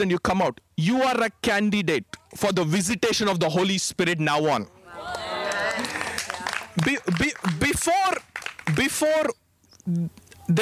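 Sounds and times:
speech: 0.0s - 6.0s, 6.8s - 10.6s
audience clapping loudly: 5.0s - 9.2s.

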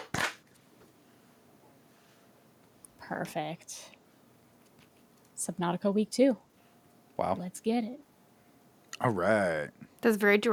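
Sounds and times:
hand clap for audio sync: 0.0s - 0.4s
speech: 3.1s - 4.0s, 5.4s - 6.5s, 7.2s - 8.1s, 9.0s - 10.5s.

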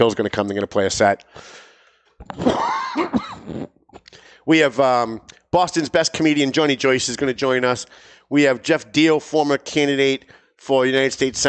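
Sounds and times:
speech: 0.0s - 1.6s, 2.2s - 3.8s, 4.5s - 11.4s
stifled held-back cough: 2.3s - 3.8s.

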